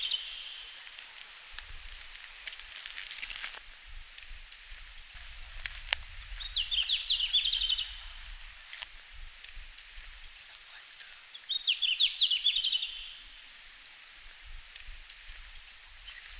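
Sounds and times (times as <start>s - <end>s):
red-flanked bluetail singing in Finland: 0.0s - 1.5s, 6.3s - 8.4s, 10.7s - 13.4s.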